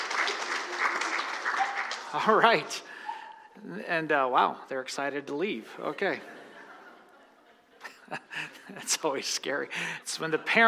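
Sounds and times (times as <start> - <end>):
audience hand clapping: 0.0 - 2.8
speech: 2.1 - 2.9, 3.6 - 6.4, 8.1 - 10.6
laughter: 5.8 - 10.6.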